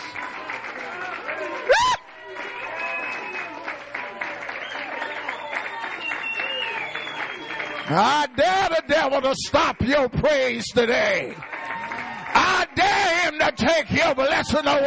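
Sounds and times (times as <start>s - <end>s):
audience clapping in praise: 0.0s - 14.8s
loud cheering and shouting voices: 0.0s - 14.8s
sharp rising whistle: 4.7s - 7.8s
speech: 7.9s - 11.5s, 12.4s - 14.8s.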